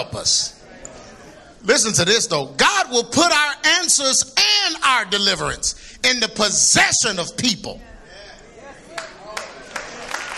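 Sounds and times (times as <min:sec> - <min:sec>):
speech: 0:00.0 - 0:00.6, 0:01.6 - 0:07.9
delayed hand clap from audience: 0:08.9 - 0:10.3.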